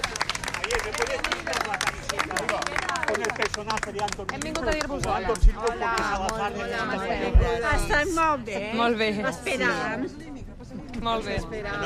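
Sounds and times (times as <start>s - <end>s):
crowd shouting and applauding outside hospital: 0.0s - 7.0s
speech: 3.6s - 10.4s, 11.0s - 11.8s.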